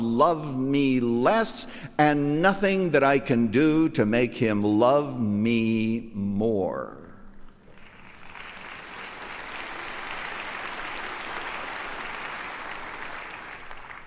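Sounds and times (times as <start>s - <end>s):
speech: 0.1s - 7.0s
audience applause: 7.6s - 14.0s.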